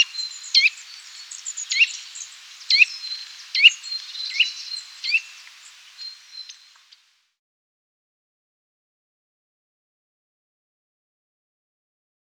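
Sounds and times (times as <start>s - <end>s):
Eurasian nuthatch giving sharp high notes and whistled twittering phrases: 0.0s - 7.0s.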